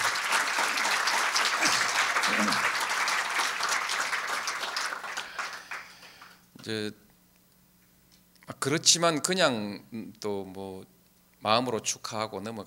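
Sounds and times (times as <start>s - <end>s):
audience applause: 0.0s - 6.4s
speech: 6.7s - 7.0s, 8.6s - 12.6s.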